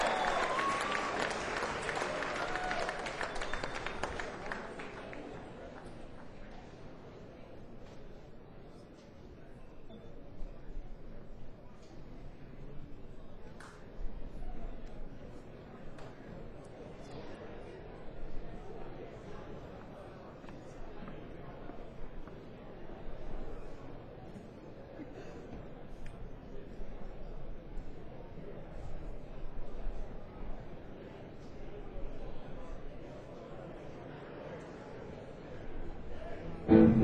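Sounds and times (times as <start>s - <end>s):
audience applause welcoming a performer at a live pre-jam concert in Asheville: 0.0s - 6.4s
crowd voices talking: 0.0s - 37.0s.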